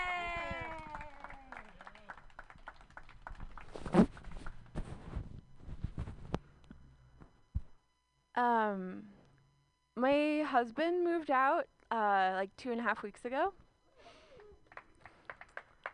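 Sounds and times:
audience clapping: 0:00.0 - 0:04.8, 0:14.6 - 0:15.9
speech: 0:08.4 - 0:09.1, 0:10.0 - 0:13.6.

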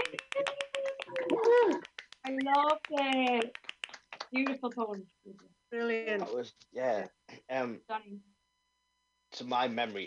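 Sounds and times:
round of applause over video call: 0:00.0 - 0:04.6
speech: 0:02.4 - 0:03.7, 0:04.3 - 0:08.3, 0:09.4 - 0:10.0.

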